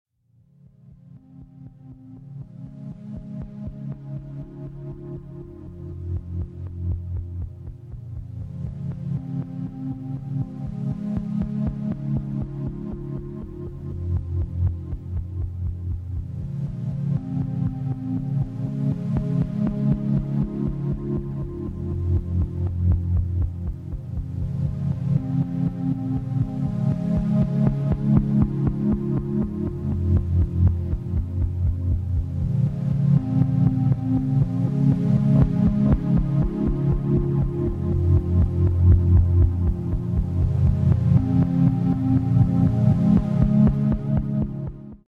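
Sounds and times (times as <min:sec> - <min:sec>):
drone: 0:00.5 - 0:45.0.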